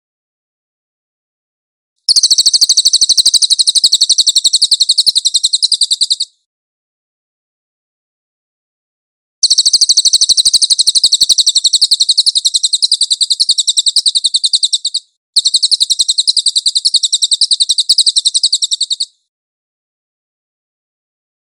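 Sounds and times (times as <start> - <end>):
Cililin bird giving a high chattering trill: 2.1 - 6.4, 9.4 - 19.2.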